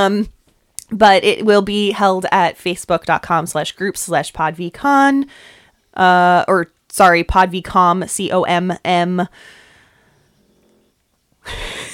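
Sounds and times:
speech: 0.0s - 9.6s, 11.4s - 11.8s
pet snoring: 10.0s - 11.1s.

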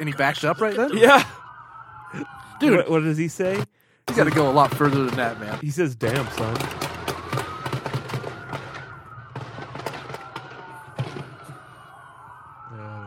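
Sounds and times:
speech: 0.0s - 1.4s, 2.1s - 6.9s
gunshots: 3.4s - 11.6s.

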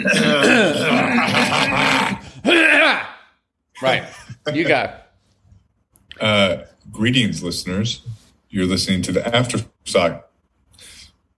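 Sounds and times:
gravelly voiced throat clearing: 0.0s - 1.7s
speech: 3.8s - 5.0s, 6.2s - 10.3s.

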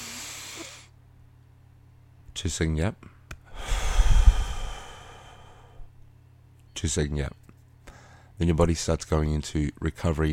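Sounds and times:
speech: 2.4s - 3.1s, 6.8s - 7.4s, 8.4s - 10.3s
slow deep breath out through the mouth: 3.5s - 6.0s, 7.9s - 8.3s.

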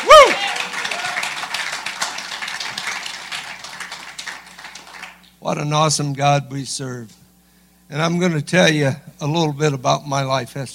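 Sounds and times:
audience round of applause: 0.0s - 5.3s
speech: 5.4s - 7.2s, 7.9s - 10.7s.

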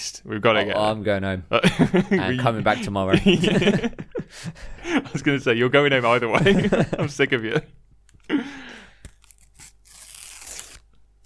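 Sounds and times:
speech: 0.0s - 8.7s
laughter: 1.5s - 7.7s
football sticker packet being torn open: 9.0s - 11.2s.

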